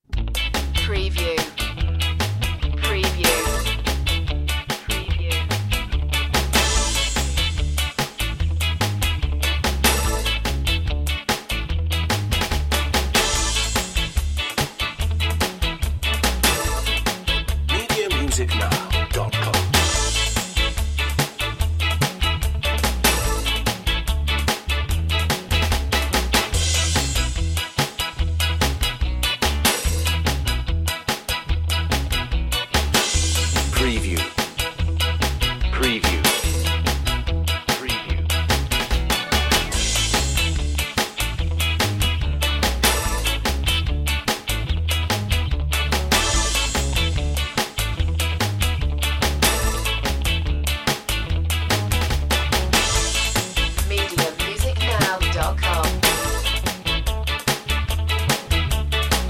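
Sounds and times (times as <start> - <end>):
ska park underscore music: 0.0 - 59.2.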